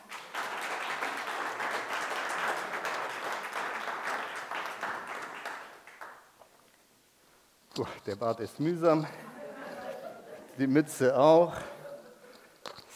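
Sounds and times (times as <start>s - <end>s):
audience applause: 0.0s - 6.2s
speech: 7.8s - 9.2s, 10.6s - 11.7s
laughter: 9.0s - 12.5s.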